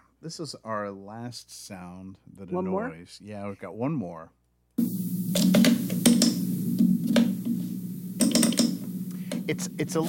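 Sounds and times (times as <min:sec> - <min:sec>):
speech: 0:00.2 - 0:05.0, 0:09.5 - 0:10.0
low electrical hum: 0:04.8 - 0:10.0
computer mouse clicking: 0:05.3 - 0:06.4, 0:08.2 - 0:09.5.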